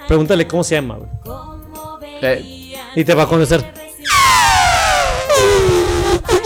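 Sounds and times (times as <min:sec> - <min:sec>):
speech: 0:00.1 - 0:01.5, 0:02.2 - 0:03.8
person imitating elephant trumpeting: 0:04.1 - 0:06.4.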